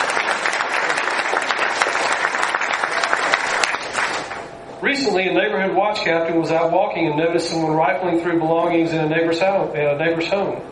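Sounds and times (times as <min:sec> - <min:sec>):
audience applause honoring Neighborhood Watch Program and Citizens Patrol volunteers: 0:00.0 - 0:04.5
speech: 0:05.1 - 0:10.7.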